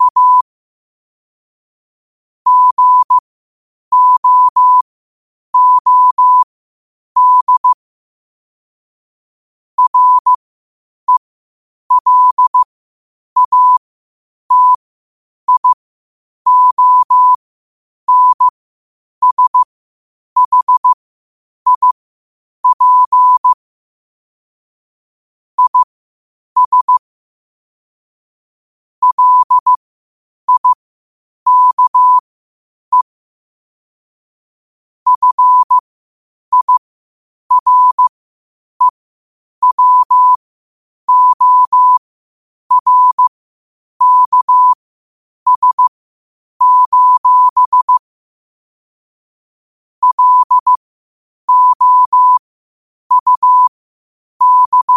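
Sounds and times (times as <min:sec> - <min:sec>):
morse code at 5 wpm: 0:00.0 - 0:00.4, 0:02.5 - 0:03.2, 0:03.9 - 0:04.8, 0:05.6 - 0:06.5, 0:07.2 - 0:07.8, 0:09.8 - 0:10.4, 0:11.9 - 0:12.7, 0:13.4 - 0:13.8, 0:14.5 - 0:14.8, 0:15.5 - 0:15.8, 0:16.5 - 0:17.4, 0:18.1 - 0:18.5, 0:19.2 - 0:19.7, 0:20.4 - 0:21.0, 0:21.7 - 0:22.0, 0:22.6 - 0:23.6, 0:25.6 - 0:25.9, 0:26.6 - 0:27.0, 0:29.0 - 0:29.8, 0:30.5 - 0:30.8, 0:31.5 - 0:32.2, 0:35.1 - 0:35.8, 0:36.5 - 0:36.8, 0:37.5 - 0:38.1, 0:39.6 - 0:40.4, 0:41.1 - 0:42.0, 0:42.7 - 0:43.3, 0:44.0 - 0:44.8, 0:45.5 - 0:45.9, 0:46.6 - 0:48.1, 0:50.0 - 0:50.8, 0:51.5 - 0:52.5, 0:53.1 - 0:53.7, 0:54.4 - 0:54.9.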